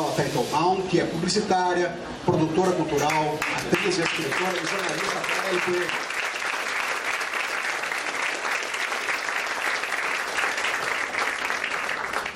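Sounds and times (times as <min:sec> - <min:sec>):
speech: 0:00.2 - 0:06.1
audience applause: 0:03.4 - 0:12.3.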